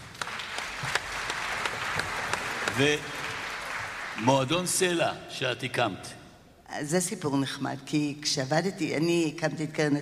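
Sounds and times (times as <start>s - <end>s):
audience applause: 0.0s - 5.0s
speech: 2.8s - 3.2s, 4.2s - 10.0s.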